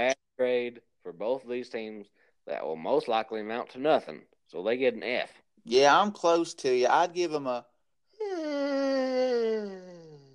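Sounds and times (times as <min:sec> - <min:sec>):
speech: 0:00.0 - 0:07.7
person yawning: 0:08.2 - 0:10.3.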